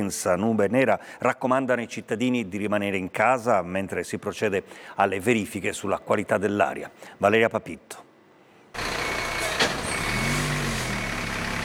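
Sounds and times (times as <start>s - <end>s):
speech: 0.0s - 8.1s
fire brigade trucks coming and going in the Vico Pisano industrial zone: 8.8s - 11.6s.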